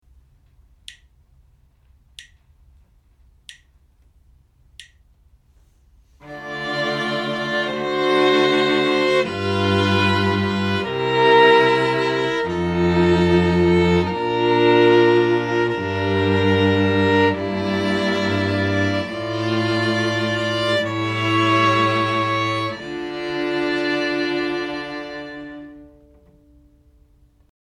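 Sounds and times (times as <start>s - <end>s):
string quartet playing: 6.2s - 26.9s.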